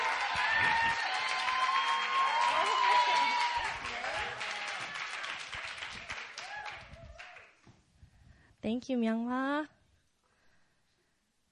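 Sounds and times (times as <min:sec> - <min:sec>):
audience applause in a church hall: 0:00.0 - 0:07.6
speech: 0:08.7 - 0:09.8.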